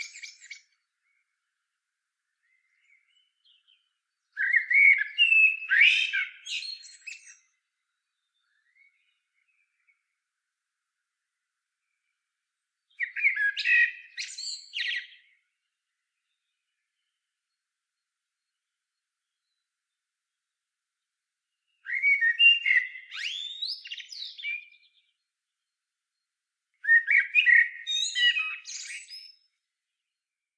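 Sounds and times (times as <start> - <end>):
common blackbird fluted song: 0.0 - 1.3, 2.4 - 10.1, 12.8 - 15.5, 21.7 - 25.3, 26.8 - 30.1.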